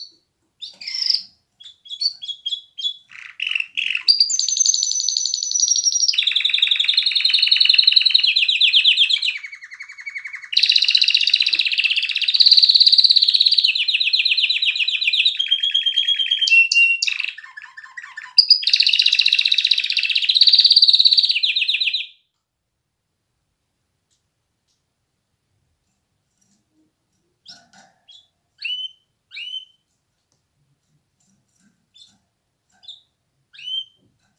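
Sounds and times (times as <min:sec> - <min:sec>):
canary song and calls: 0:00.0 - 0:22.3, 0:26.4 - 0:30.0, 0:31.2 - 0:34.3.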